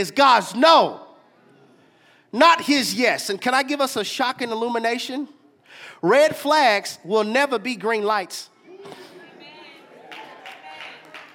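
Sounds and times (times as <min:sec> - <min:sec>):
speech: 0:00.0 - 0:01.0, 0:02.3 - 0:09.0
audience golf claps: 0:10.1 - 0:11.3.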